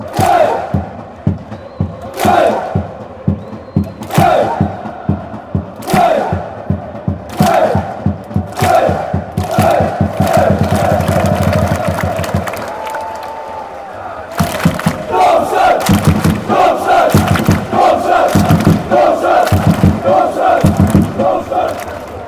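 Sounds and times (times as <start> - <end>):
fans chanting: 0.0 - 22.2.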